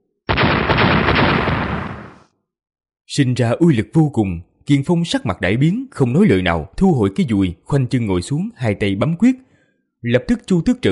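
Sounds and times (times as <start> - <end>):
loud explosion: 0.3 - 2.3
speech: 3.2 - 10.9.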